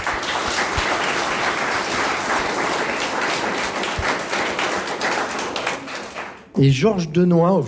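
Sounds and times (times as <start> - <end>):
audience applause: 0.0 - 6.6
speech: 6.6 - 7.6.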